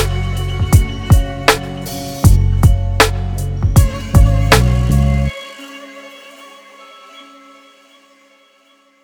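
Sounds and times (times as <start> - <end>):
music beat: 0.0 - 5.4.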